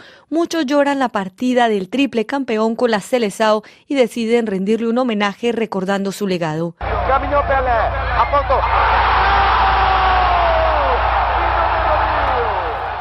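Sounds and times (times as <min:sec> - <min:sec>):
speech: 0:00.3 - 0:09.1
stadium crowd ovation after a goal: 0:06.8 - 0:12.9.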